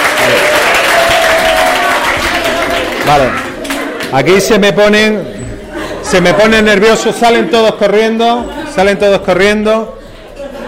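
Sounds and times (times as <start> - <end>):
steady dense applause from an audience: 0.0 - 4.8
laughter: 0.2 - 10.6
speech: 3.1 - 3.4, 4.1 - 5.5, 6.1 - 10.0.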